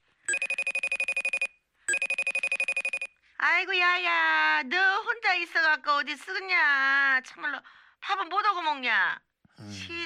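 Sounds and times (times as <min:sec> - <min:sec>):
internet phone call ringing in electronic trills: 0:00.3 - 0:03.1
speech: 0:03.4 - 0:10.0.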